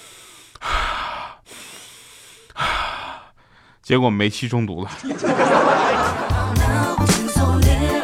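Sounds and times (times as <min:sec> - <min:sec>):
slow deep breaths: 0:00.0 - 0:03.8
speech: 0:03.9 - 0:07.9
laughter: 0:04.9 - 0:06.6.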